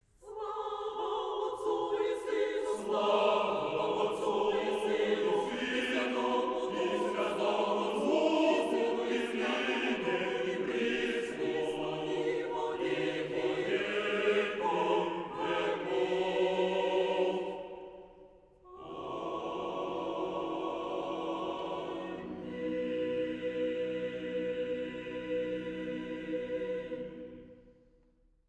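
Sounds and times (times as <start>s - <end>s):
choir singing: 0.2s - 27.9s.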